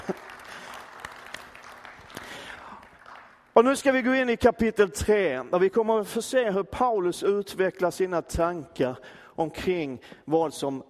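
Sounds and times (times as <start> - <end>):
audience applause: 0.0 - 3.5
speech: 3.6 - 10.8.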